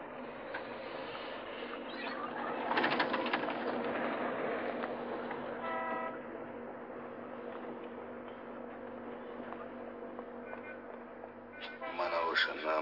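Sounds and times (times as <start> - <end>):
tram arriving: 0.0 - 12.8
tram horn-like note: 5.6 - 6.2.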